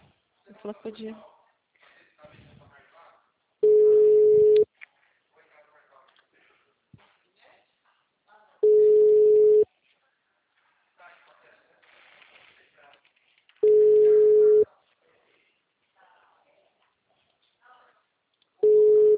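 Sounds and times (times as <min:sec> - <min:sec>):
speech: 0:00.6 - 0:01.3
telephone ringback tone during call: 0:03.6 - 0:04.6, 0:08.6 - 0:09.6, 0:13.6 - 0:14.6, 0:18.6 - 0:19.1.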